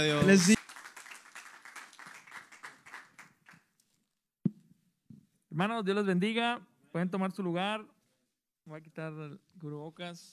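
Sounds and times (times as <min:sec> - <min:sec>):
speech: 0:00.0 - 0:00.6, 0:05.6 - 0:08.0, 0:08.7 - 0:10.3
audience applause: 0:00.0 - 0:03.6.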